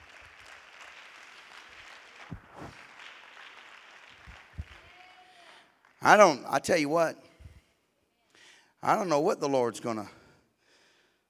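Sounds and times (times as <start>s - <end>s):
crowd clapping hands: 0.0s - 6.2s
speech: 6.0s - 7.2s, 8.8s - 10.2s.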